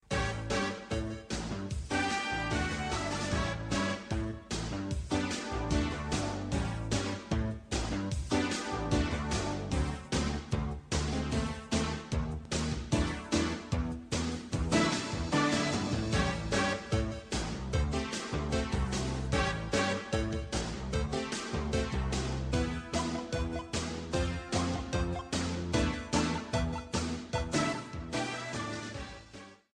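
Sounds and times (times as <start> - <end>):
instrumental music: 0.0 - 29.7.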